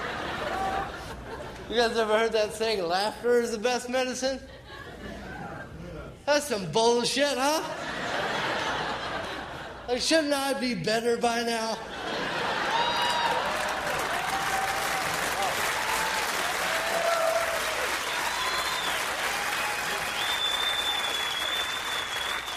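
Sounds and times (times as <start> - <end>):
crowd laughter: 0.0 - 1.7, 7.6 - 10.0, 11.8 - 15.9
speech: 1.7 - 4.6, 6.3 - 7.8, 9.9 - 11.9
audience clapping: 12.6 - 22.5
high whistles: 18.3 - 22.5.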